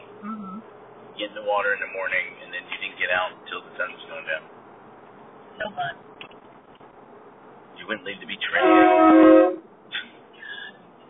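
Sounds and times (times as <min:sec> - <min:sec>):
speech: 0:01.2 - 0:04.6, 0:05.6 - 0:06.3, 0:07.8 - 0:09.6
truck horn blaring: 0:08.6 - 0:09.7.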